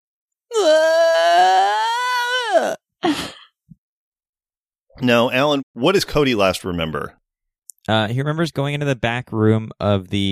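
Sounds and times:
voice imitating a spirit wailing as it is summoned: 0.5 - 2.8
speech: 2.6 - 3.2, 5.0 - 7.2, 7.9 - 10.2.

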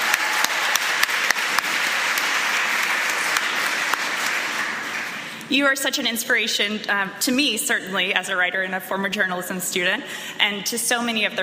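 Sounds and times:
crowd clapping: 0.0 - 5.5
speech: 5.5 - 11.4.

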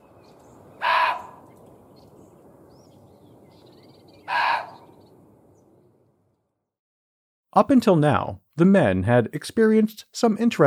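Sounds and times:
muntjac deer barking: 0.8 - 1.4, 4.3 - 4.9
speech: 7.6 - 10.6.

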